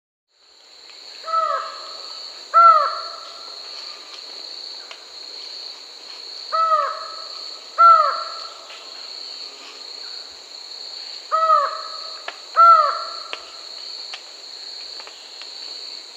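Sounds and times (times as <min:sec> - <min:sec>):
lined forest-falcon call: 0:01.2 - 0:03.5, 0:06.5 - 0:08.7, 0:11.3 - 0:13.6.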